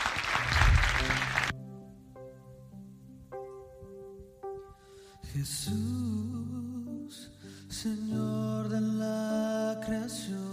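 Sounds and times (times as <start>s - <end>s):
audience applause: 0.0s - 1.5s
speech: 5.4s - 6.4s, 7.8s - 9.2s, 9.8s - 10.4s.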